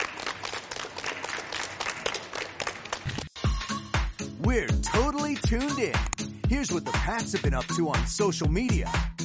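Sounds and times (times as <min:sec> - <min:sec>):
round of applause: 0:00.0 - 0:03.4
speech: 0:04.4 - 0:09.1.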